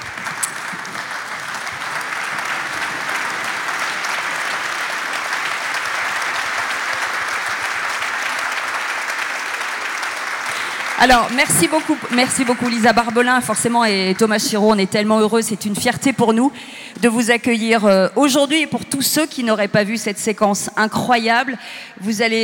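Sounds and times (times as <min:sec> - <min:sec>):
audience applause at a standing ovation for an Olympic archery medallist: 0:00.0 - 0:14.6
speech: 0:11.0 - 0:22.4.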